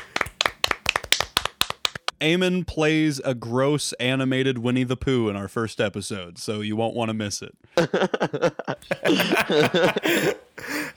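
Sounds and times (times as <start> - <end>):
few people clapping: 0.0 - 2.1
speech: 2.2 - 10.7
laughter: 7.8 - 10.9.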